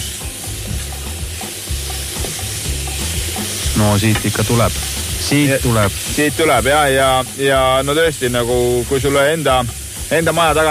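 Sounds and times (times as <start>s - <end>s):
food sizzling in a frying pan: 0.0s - 10.6s
speech: 3.8s - 10.6s.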